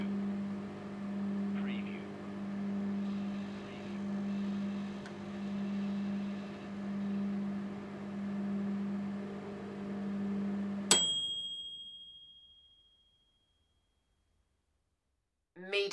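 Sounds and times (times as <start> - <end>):
microwave oven: 0.0 - 12.4.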